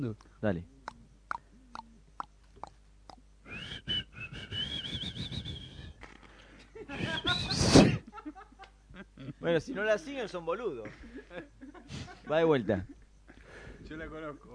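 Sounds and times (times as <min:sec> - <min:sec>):
speech: 0:00.0 - 0:00.8, 0:09.2 - 0:13.0, 0:13.9 - 0:14.5
person whistling a song melody: 0:03.5 - 0:06.0, 0:07.0 - 0:07.7
laughter: 0:06.7 - 0:09.4, 0:10.8 - 0:13.0.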